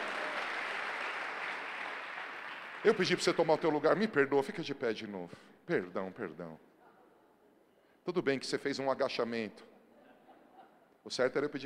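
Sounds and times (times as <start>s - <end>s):
applause: 0.0s - 3.8s
speech: 2.8s - 6.7s, 8.0s - 9.7s, 11.0s - 11.6s.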